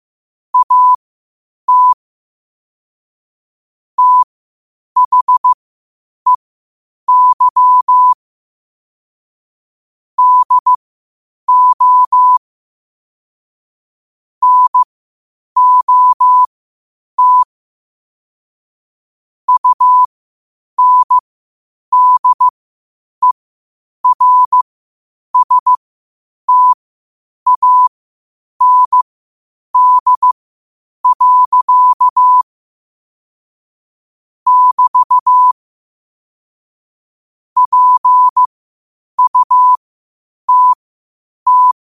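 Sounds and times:
morse code at 5 wpm: 0.6s - 1.0s, 1.7s - 2.0s, 4.0s - 4.3s, 5.0s - 5.6s, 7.1s - 8.2s, 10.2s - 10.8s, 11.5s - 12.4s, 14.4s - 14.9s, 15.6s - 16.5s, 17.2s - 17.5s, 19.5s - 20.1s, 20.8s - 21.2s, 21.9s - 22.5s, 24.0s - 24.6s, 25.4s - 25.8s, 26.5s - 26.8s, 27.5s - 27.9s, 28.6s - 29.0s, 29.8s - 30.4s, 31.0s - 32.5s, 34.5s - 35.6s, 37.6s - 38.5s, 39.2s - 39.8s, 40.5s - 40.8s, 41.5s - 41.8s.

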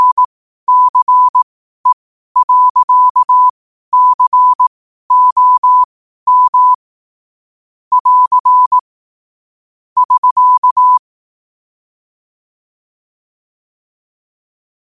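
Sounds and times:
morse code at 5 wpm: 0.0s - 1.4s, 2.4s - 6.8s, 7.9s - 8.8s, 10.0s - 11.0s.

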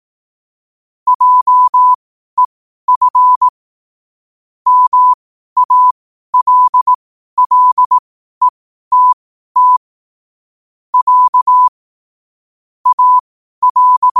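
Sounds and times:
morse code at 5 wpm: 1.1s - 2.0s, 2.9s - 3.5s, 4.7s - 8.0s, 8.9s - 9.8s, 11.0s - 11.7s, 12.8s - 14.1s.

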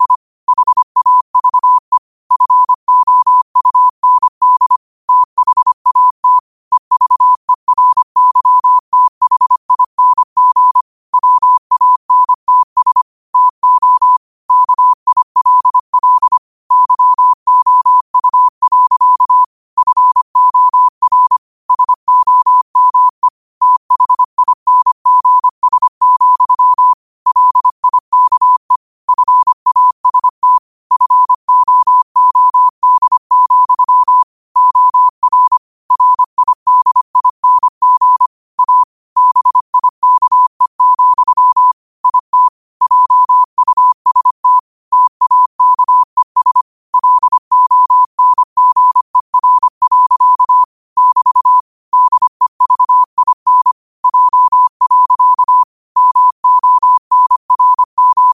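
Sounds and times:
morse code at 5 wpm: 0.0s - 58.3s.

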